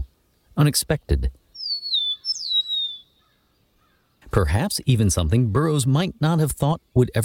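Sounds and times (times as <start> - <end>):
speech: 0.6 - 1.4, 4.4 - 7.2
bird singing a thin high whistled song: 1.5 - 3.4.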